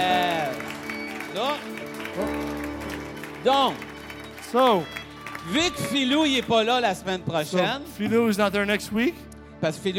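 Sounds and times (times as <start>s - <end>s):
applause: 0.0s - 7.2s
speech: 3.4s - 3.9s, 4.5s - 9.9s.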